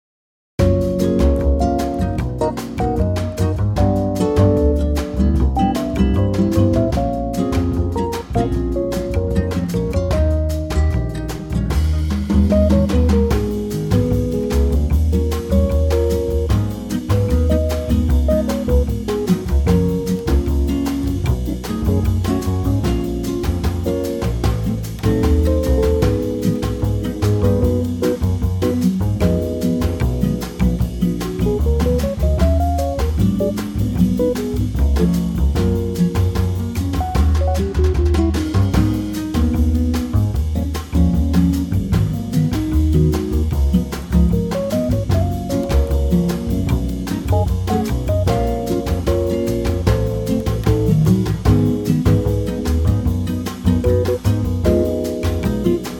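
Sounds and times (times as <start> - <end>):
bossa nova trio in G-flat: 0.6 - 55.9.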